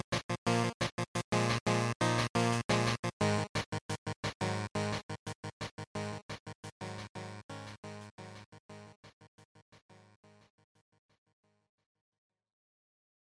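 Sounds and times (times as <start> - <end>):
fighting game title music: 0.1 - 8.9.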